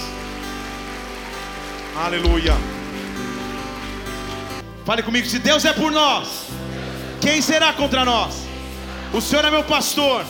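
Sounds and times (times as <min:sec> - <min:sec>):
audience applauding: 0:00.0 - 0:04.8
speech: 0:02.0 - 0:02.8, 0:04.9 - 0:06.6, 0:07.2 - 0:08.4, 0:09.1 - 0:10.2.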